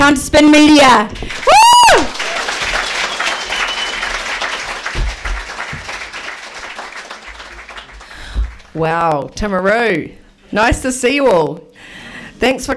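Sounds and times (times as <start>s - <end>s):
speech: 0.1s - 2.1s, 8.8s - 12.7s
crowd applauding: 1.2s - 8.8s.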